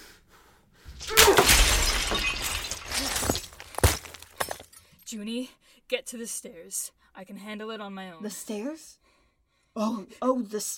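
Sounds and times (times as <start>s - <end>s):
something shattering into shards: 1.0s - 4.8s
tinkling debris scattering: 1.0s - 4.8s
speech: 5.1s - 9.0s, 9.8s - 10.7s.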